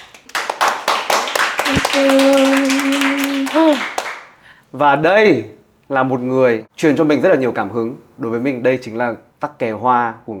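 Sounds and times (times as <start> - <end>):
audience applause: 0.0 - 4.4
speech: 1.7 - 3.9, 4.7 - 10.3.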